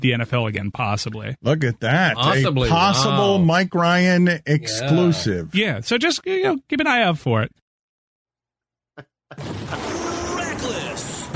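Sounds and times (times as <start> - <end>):
speech: 0.0 - 7.6, 9.3 - 9.9
explosion sound effect: 9.3 - 11.3.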